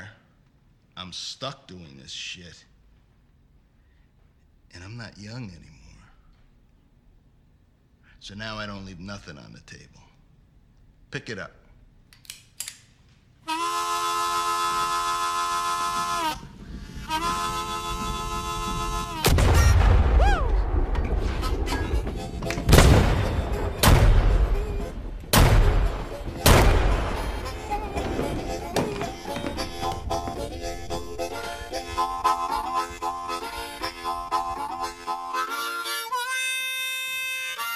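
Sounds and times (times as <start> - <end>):
speech: 1.0 - 2.7, 4.7 - 5.8, 8.2 - 10.1, 11.1 - 11.6
film music: 13.5 - 36.6
gunshots in a crime film: 19.2 - 32.8.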